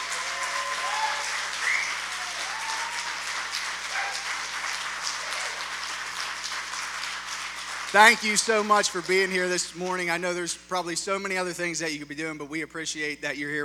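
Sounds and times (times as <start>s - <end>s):
audience applause: 0.0s - 9.4s
speech: 7.9s - 13.6s.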